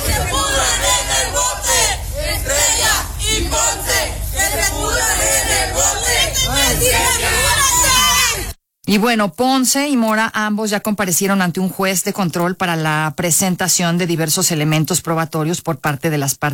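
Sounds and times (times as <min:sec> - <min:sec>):
protesters shouting chants and slogans: 0:00.0 - 0:08.6
speech: 0:08.9 - 0:16.5.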